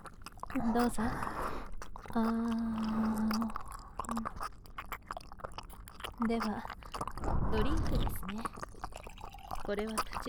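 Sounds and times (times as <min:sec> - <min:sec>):
person chewing a sandwich with crunchy bites: 0:00.0 - 0:10.2
speech: 0:00.6 - 0:01.3, 0:02.1 - 0:04.5, 0:06.2 - 0:06.8, 0:07.5 - 0:08.6, 0:09.7 - 0:10.2.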